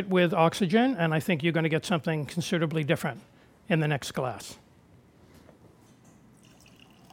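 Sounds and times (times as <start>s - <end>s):
speech: 0.0s - 4.6s
Bordeaux wine sloshing and gurgling in a beer-garden-style pitcher: 6.4s - 7.1s.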